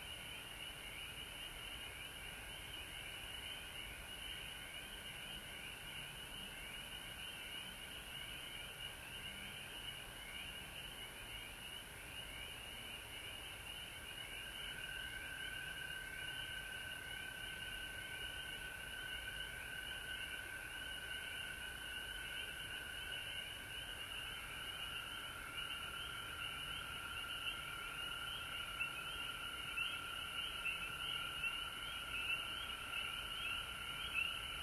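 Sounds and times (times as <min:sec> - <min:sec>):
frog chorus: 0:00.0 - 0:34.6.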